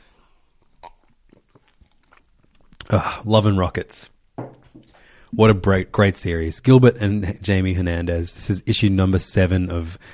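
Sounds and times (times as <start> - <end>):
person sipping and swallowing water: 0.0 - 3.2
speech: 2.9 - 4.2, 5.3 - 10.1.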